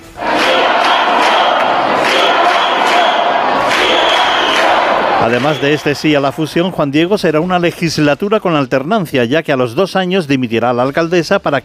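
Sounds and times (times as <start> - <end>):
people shouting in a town council meeting: 0.0 - 6.0
speech: 5.2 - 11.6.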